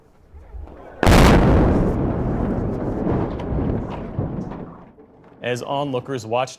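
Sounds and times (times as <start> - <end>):
Black Hawk Bridge demolition crashing into river: 1.0 - 4.9
speech: 5.4 - 6.5.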